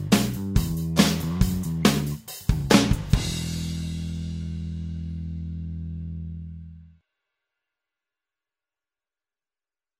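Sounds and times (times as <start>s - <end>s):
guitar backing track for a solo section: 0.0s - 6.9s.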